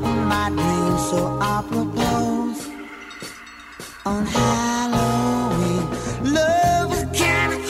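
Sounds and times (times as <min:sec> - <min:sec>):
spooky Halloween sounds: 0:00.2 - 0:07.5.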